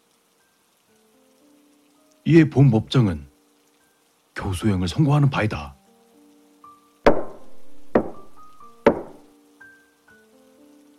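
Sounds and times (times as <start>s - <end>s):
speech: 2.2s - 3.3s, 4.4s - 5.8s
hard wood striking: 7.1s - 9.3s.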